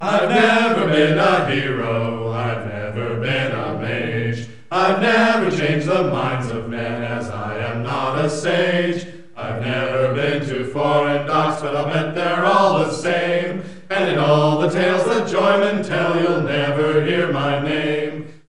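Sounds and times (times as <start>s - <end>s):
tavern song: 0.0s - 18.4s.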